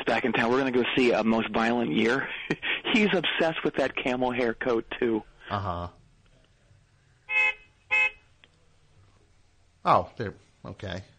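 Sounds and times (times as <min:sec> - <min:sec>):
speech: 0:00.1 - 0:06.0, 0:09.8 - 0:11.1
laughter: 0:02.0 - 0:03.7
car horn honking: 0:07.3 - 0:08.3.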